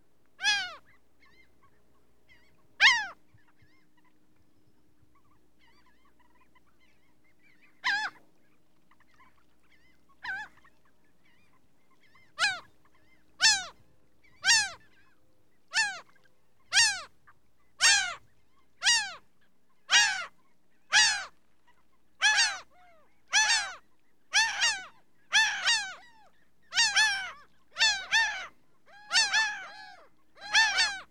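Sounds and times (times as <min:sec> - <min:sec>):
laughing gull calling: 0:00.4 - 0:01.4, 0:02.4 - 0:03.2, 0:12.4 - 0:12.7, 0:13.4 - 0:13.7, 0:14.4 - 0:14.8, 0:15.7 - 0:16.1, 0:16.7 - 0:17.1, 0:17.8 - 0:18.2, 0:18.8 - 0:19.2, 0:19.9 - 0:20.3, 0:20.9 - 0:21.3, 0:22.2 - 0:22.7, 0:23.3 - 0:23.8, 0:24.4 - 0:26.1, 0:26.7 - 0:31.0.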